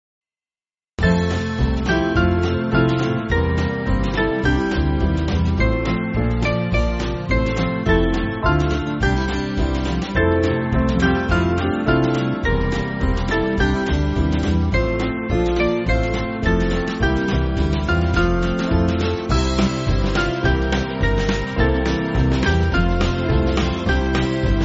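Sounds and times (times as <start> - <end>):
church band backing music: 1.3 - 24.6.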